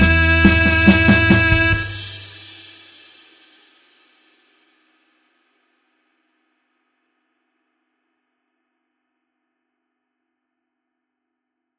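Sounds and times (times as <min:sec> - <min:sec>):
slow blues harmonica in A: 0:00.0 - 0:02.4.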